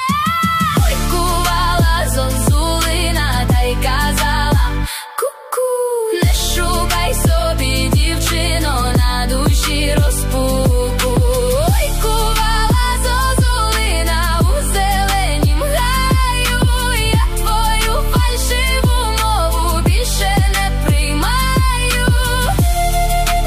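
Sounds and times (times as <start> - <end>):
Ukrainian ethno pop music: 0.0 - 23.4.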